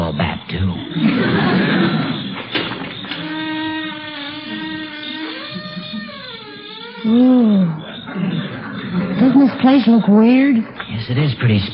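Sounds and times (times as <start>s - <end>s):
laughter: 1.0s - 2.4s, 8.1s - 10.0s
door being pushed open: 1.1s - 7.2s
speech: 9.7s - 11.7s.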